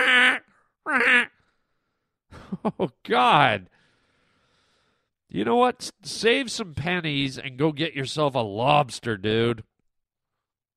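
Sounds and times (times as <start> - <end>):
person imitating a blue heron's quack: 0.0 - 1.3
speech: 0.9 - 1.3, 2.5 - 3.8, 5.3 - 9.7
laughter: 2.3 - 3.6.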